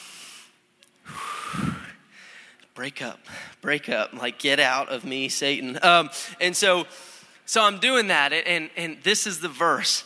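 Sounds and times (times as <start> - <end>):
person sniffing: 0.0 - 2.5
deep snorting inhale of hot shower steam: 0.0 - 2.6
soft breath: 0.0 - 2.7
speech: 2.8 - 10.0.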